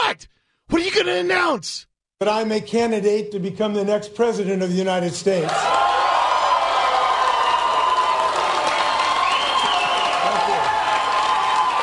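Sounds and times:
speech: 0.1 - 5.9
crowd cheering and applauding at campaign announcement: 5.4 - 11.8
shouts and whoops: 5.4 - 11.8.

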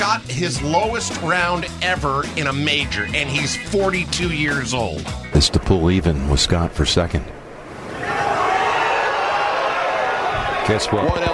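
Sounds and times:
speech: 0.2 - 7.4, 10.7 - 11.3
golf tournament crowd cheering and roaring: 7.7 - 11.3.

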